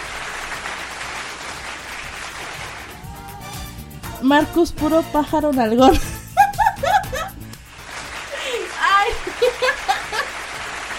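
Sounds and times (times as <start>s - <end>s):
audience applause welcoming a guest: 0.0s - 3.7s, 7.6s - 10.9s
speech: 4.2s - 6.1s
laughter: 5.9s - 7.4s, 8.1s - 10.9s.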